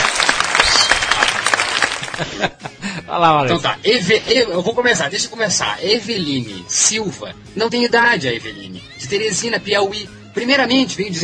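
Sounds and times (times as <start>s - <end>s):
applause: 0.0s - 2.2s
laughter: 0.8s - 5.0s
speech: 2.2s - 11.2s.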